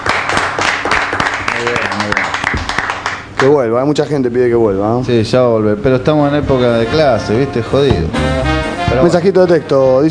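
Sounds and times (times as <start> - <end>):
talk show audience applause for a departing guest: 0.0 - 3.4
speech: 3.4 - 10.0.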